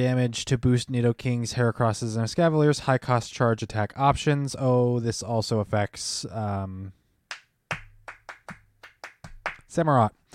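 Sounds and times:
speech: 0.0 - 7.0, 9.7 - 10.3
hand claps: 7.3 - 9.7.

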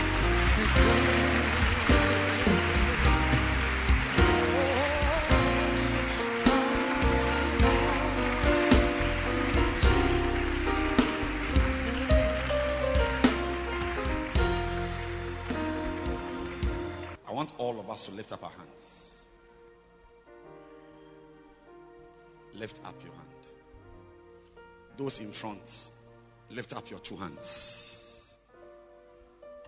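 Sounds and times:
audience applauding: 0.0 - 17.2
sustained musical tones: 0.0 - 17.2
speech: 22.6 - 23.5, 25.0 - 28.0.

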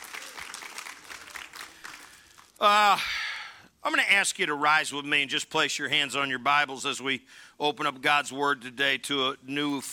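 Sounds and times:
audience applauding: 0.0 - 2.6
speech: 2.6 - 3.2, 3.8 - 9.9.

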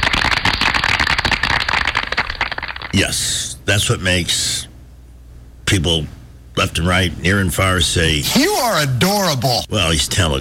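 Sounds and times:
audience clapping: 0.0 - 3.0
speech: 2.9 - 4.7, 5.7 - 10.3.

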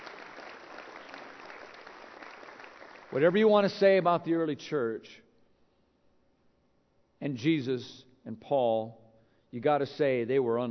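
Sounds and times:
audience hand clapping: 0.0 - 3.6
speech: 3.1 - 5.2, 7.2 - 10.6.

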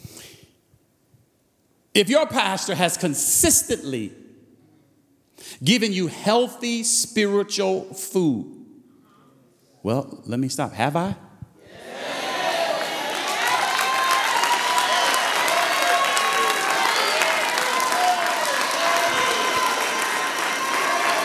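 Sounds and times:
speech: 2.0 - 4.3, 5.4 - 8.6, 9.8 - 11.3
audience clapping: 12.5 - 21.2.

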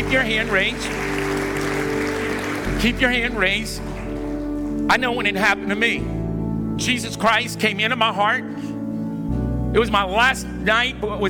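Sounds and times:
audience applause: 0.0 - 4.3
speech: 0.1 - 1.1, 2.8 - 3.9, 4.8 - 6.2, 6.8 - 8.7, 9.7 - 11.2.

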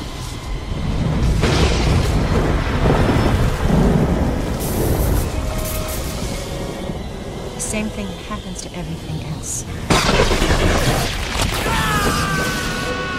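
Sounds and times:
lightning strike: 0.0 - 6.6, 9.9 - 13.1
heavy rolling thunder rumble: 0.0 - 7.5, 9.8 - 13.1
speech: 7.8 - 11.0.

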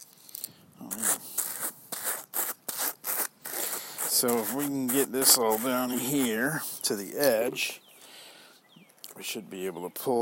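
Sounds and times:
hand carders being scraped clear of leftover fiber: 0.9 - 6.9
speech: 4.2 - 7.8, 9.2 - 10.2.

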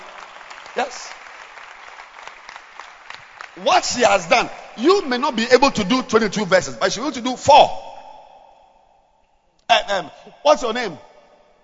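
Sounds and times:
audience clapping hands: 0.0 - 4.6
speech: 0.8 - 1.2, 3.6 - 7.8, 9.9 - 11.1.

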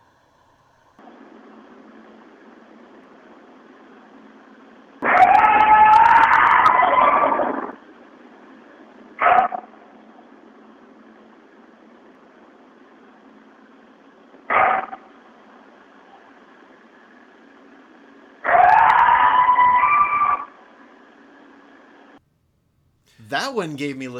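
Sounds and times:
alleged dogman howl: 5.0 - 7.7, 18.5 - 20.5
speech: 23.3 - 24.1.

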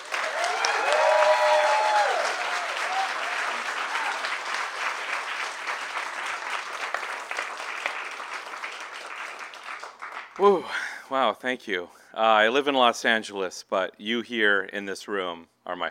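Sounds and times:
audience applause welcoming a debut fiction author: 0.0 - 10.6
whoops and voices: 0.3 - 4.2
speech: 10.4 - 15.8.

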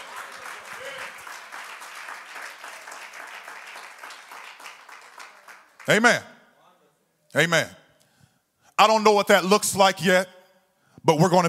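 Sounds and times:
audience clapping hands: 0.0 - 6.2
speech: 5.8 - 6.3, 7.3 - 7.8, 8.8 - 10.4, 11.0 - 11.4.

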